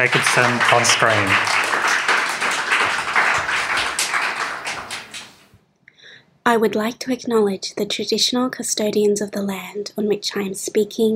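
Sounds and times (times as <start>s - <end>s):
speech: 0.0s - 1.7s, 6.4s - 11.1s
audience applause: 0.0s - 5.5s.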